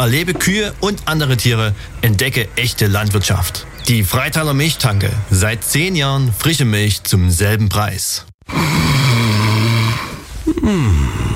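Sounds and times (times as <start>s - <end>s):
speech: 0.0s - 9.0s, 10.6s - 11.3s
person snoring in bed: 8.4s - 11.3s.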